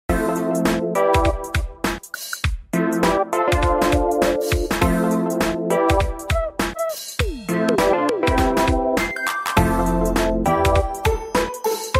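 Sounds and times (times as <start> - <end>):
curio music: 0.1 - 11.9.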